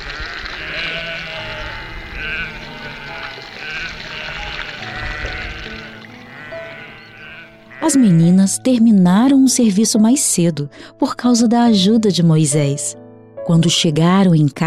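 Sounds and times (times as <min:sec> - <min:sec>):
soft watery trickle: 0:00.0 - 0:07.5
flock of sheep bleating: 0:00.0 - 0:08.3
speech: 0:07.9 - 0:14.6.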